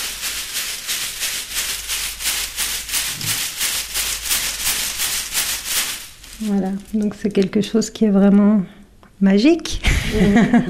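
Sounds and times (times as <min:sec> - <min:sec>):
chakapa leaf-bundle rattle shaken: 0:00.0 - 0:07.5
speech: 0:06.4 - 0:10.6.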